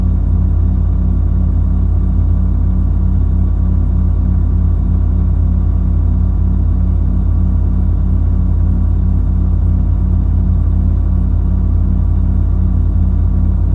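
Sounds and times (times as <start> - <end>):
computer case hum through a contact mic: 0.0 - 13.7.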